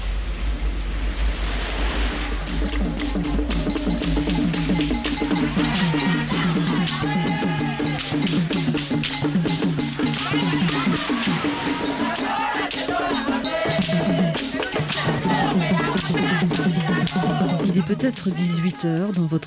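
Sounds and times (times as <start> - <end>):
surf breaking on a beach at Ouidah, Benin: 0.0 - 17.9
laughter: 10.0 - 13.4
speech: 17.9 - 19.4.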